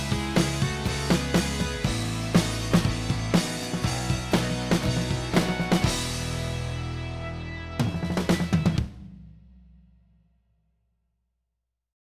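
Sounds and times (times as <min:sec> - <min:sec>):
pop music mix: 0:00.0 - 0:08.4.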